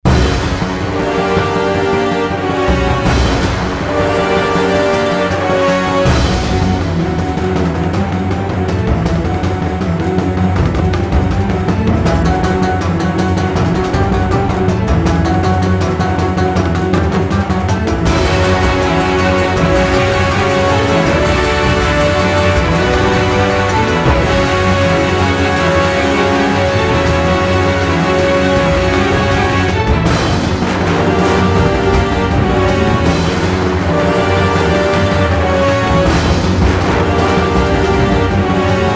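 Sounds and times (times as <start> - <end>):
music: 0.0 - 38.9.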